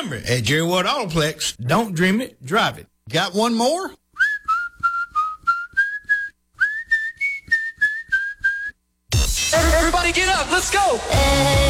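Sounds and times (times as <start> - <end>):
speech: 0.0 - 4.0, 10.0 - 11.6
person whistling: 4.2 - 8.8.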